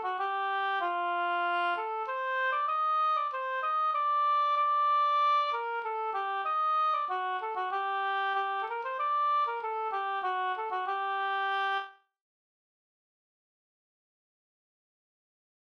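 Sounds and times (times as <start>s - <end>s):
Swedish polska folk tune: 0.0s - 12.0s.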